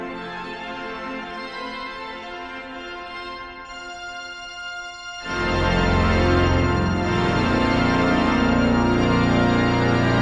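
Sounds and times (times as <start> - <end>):
symphonic trailer music: 5.2 - 10.2.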